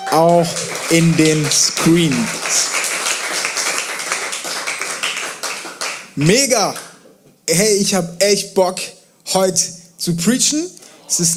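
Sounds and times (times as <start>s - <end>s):
crowd applause: 0.0s - 6.9s
speech: 0.1s - 2.8s, 6.2s - 6.8s, 7.5s - 11.3s.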